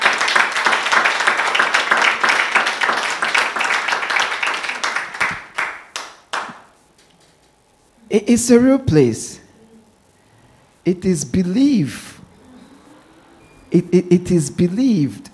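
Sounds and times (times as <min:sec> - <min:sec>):
crowd clapping: 0:00.0 - 0:07.4
speech: 0:08.1 - 0:09.4, 0:10.9 - 0:12.1, 0:13.7 - 0:15.3.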